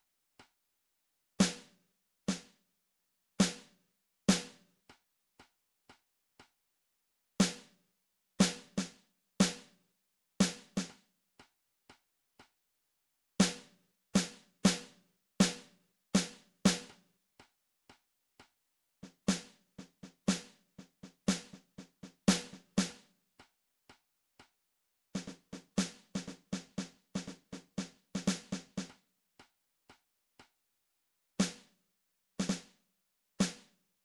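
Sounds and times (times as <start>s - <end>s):
snare drum: 1.4s - 2.6s, 3.4s - 4.7s, 7.4s - 7.8s, 8.4s - 9.8s, 10.4s - 11.0s, 13.4s - 17.0s, 19.0s - 23.1s, 25.2s - 29.0s, 31.4s - 31.7s, 32.4s - 32.8s, 33.4s - 33.8s.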